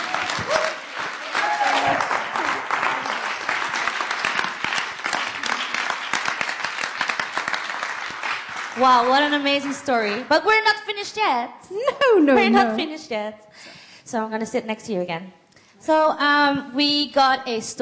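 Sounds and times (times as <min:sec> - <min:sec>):
brief voices and cheers: 0:00.0 - 0:02.6
audience applause: 0:00.0 - 0:10.4
speech: 0:08.8 - 0:17.8.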